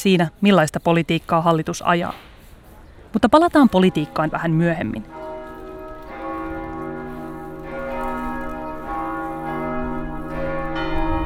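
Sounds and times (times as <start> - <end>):
speech: 0.0 - 2.3, 3.1 - 5.2
church bell tolling: 3.7 - 11.2.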